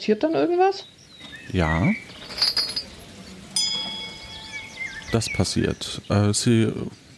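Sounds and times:
speech: 0.0 - 2.5, 5.1 - 7.0
bell ringing: 2.1 - 3.0, 3.6 - 5.3.

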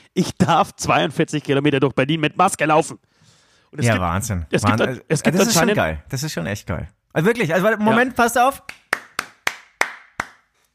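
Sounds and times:
speech: 0.2 - 3.1, 3.7 - 8.8
hand clapping: 8.6 - 10.7.

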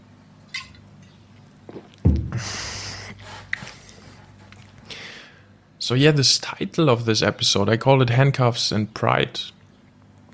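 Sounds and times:
soft clunk: 1.7 - 2.4
person sipping a drink: 1.7 - 5.1
speech: 5.9 - 9.6.

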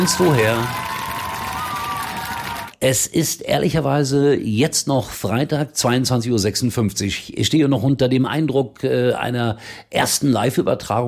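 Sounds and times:
speech: 0.0 - 0.8, 2.8 - 11.0
crowd cheering and applauding: 0.0 - 2.8.

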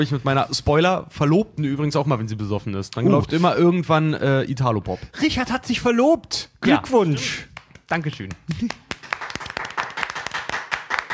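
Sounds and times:
speech: 0.0 - 8.8
crowd applause: 8.5 - 11.1.

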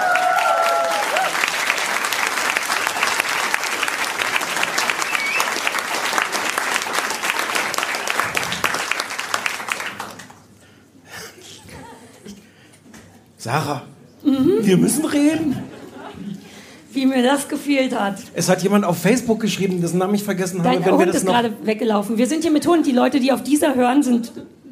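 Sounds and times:
audience applause: 0.0 - 10.6
laughter: 11.4 - 12.4, 14.4 - 16.5
speech: 13.4 - 15.7, 17.0 - 24.5.

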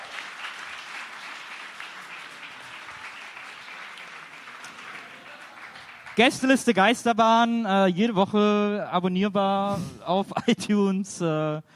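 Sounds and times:
audience applause: 0.0 - 6.9
speech: 6.2 - 11.7.

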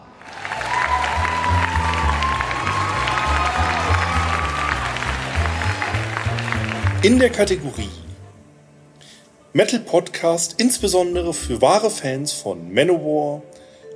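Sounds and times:
audience applause: 0.0 - 7.6
speech: 7.0 - 8.0, 9.5 - 13.6.

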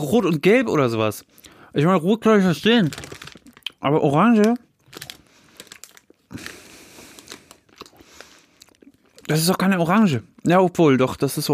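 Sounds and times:
speech: 0.0 - 3.1, 3.8 - 5.0, 9.3 - 11.5
plastic gummy bear bag crinkling: 2.4 - 9.6
gummy bears being chewed: 2.8 - 10.8.

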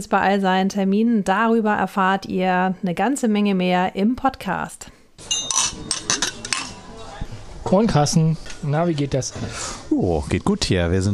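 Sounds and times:
speech: 0.0 - 5.9, 7.7 - 11.1
dishes and glasses clinking from guests: 5.2 - 7.3.

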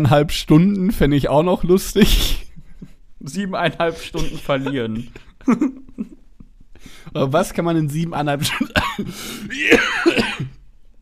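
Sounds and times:
speech: 0.0 - 2.4, 3.2 - 6.2, 6.8 - 10.6
laughter: 3.9 - 6.3
person coughing harshly after choking on something swallowed: 8.5 - 10.6.

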